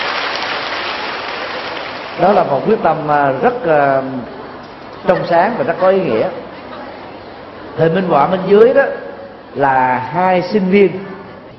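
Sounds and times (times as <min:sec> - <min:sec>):
crowd applauding: 0:00.0 - 0:02.4
speech: 0:02.2 - 0:04.4, 0:05.0 - 0:06.4, 0:07.8 - 0:11.1.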